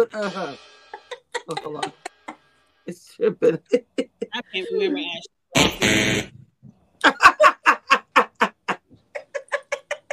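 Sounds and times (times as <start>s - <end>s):
speech: 0.0s - 0.8s, 1.5s - 2.1s, 2.9s - 6.4s, 7.0s - 7.5s
laughter: 0.1s - 2.5s, 3.2s - 4.8s, 7.0s - 10.1s
game show buzzer: 5.6s - 6.3s.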